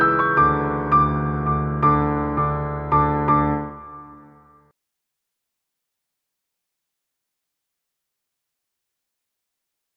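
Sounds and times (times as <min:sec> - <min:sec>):
piano: 0:00.0 - 0:04.8.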